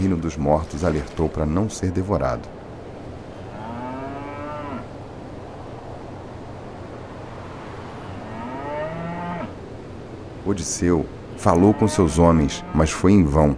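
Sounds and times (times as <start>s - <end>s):
speech: 0.0s - 2.6s, 10.5s - 13.5s
cattle of the god Helios mooing on his island: 3.4s - 4.9s, 8.1s - 9.5s, 11.4s - 13.0s.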